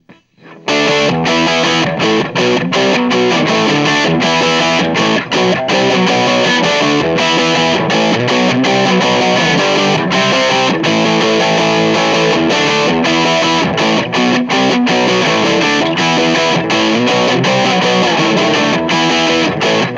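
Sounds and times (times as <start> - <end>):
AC30 amplifier miked: 0.0 - 19.9.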